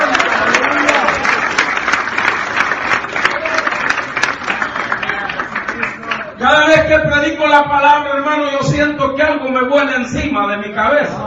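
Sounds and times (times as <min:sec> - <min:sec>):
audience applauding: 0:00.0 - 0:06.4
speech: 0:06.5 - 0:11.2.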